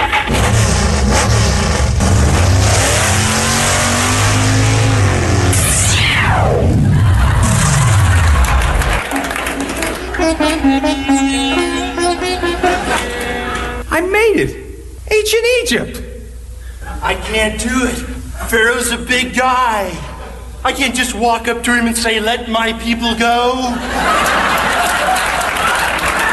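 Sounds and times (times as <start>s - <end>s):
car engine revving and accelerating: 0.0s - 9.0s
whining tone sweeping downward: 0.4s - 8.4s, 10.1s - 13.8s
laughter: 6.7s - 13.8s, 23.7s - 26.3s
speech: 10.4s - 11.0s, 14.4s - 14.6s, 15.2s - 16.1s, 17.0s - 24.5s.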